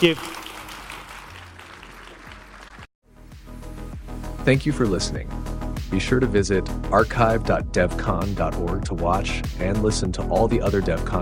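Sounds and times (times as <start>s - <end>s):
speech: 0.0s - 0.4s, 4.4s - 11.2s
audience applause: 0.0s - 2.9s.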